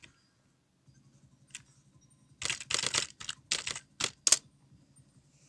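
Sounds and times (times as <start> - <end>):
office sound effects: 2.4 - 4.4.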